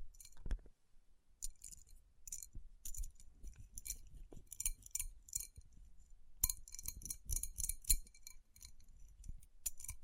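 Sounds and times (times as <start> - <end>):
faint bright crackles and tiny clinks: 0.2 - 0.4, 1.4 - 10.0
fingers tapping on rhinestone-covered palms: 1.4 - 5.7, 6.4 - 10.0
soft rubbing of rhinestone-covered palms: 1.4 - 10.0.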